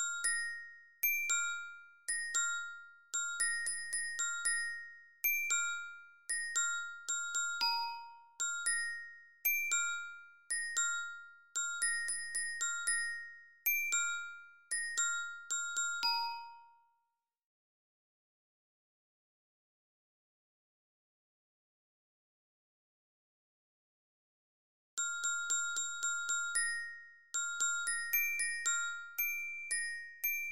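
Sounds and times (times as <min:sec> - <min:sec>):
lyra glockenspiel of a Spielmannszug marching band: 0:00.0 - 0:17.2, 0:25.0 - 0:30.5.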